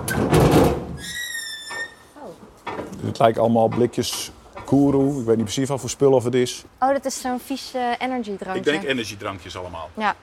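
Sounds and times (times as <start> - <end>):
heavy container door scraping and squealing as pulled open by its handles: 0.0 - 2.1
speech: 3.2 - 10.2.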